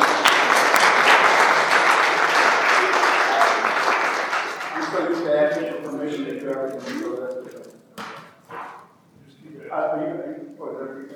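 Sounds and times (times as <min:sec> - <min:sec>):
people clapping: 0:00.0 - 0:08.8.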